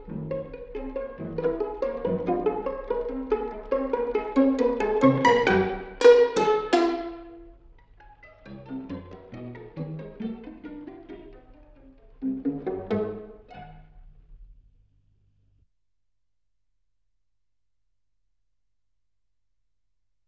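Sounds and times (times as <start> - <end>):
string quartet in C major: 0.0 - 14.4.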